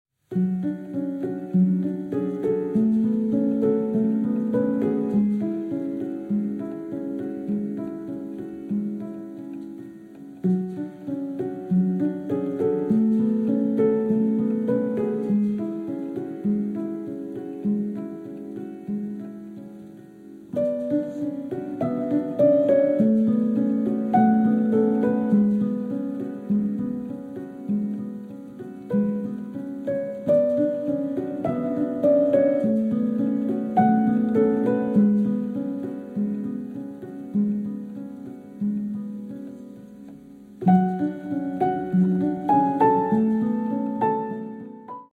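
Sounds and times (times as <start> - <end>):
piano piece: 0.2 - 45.1.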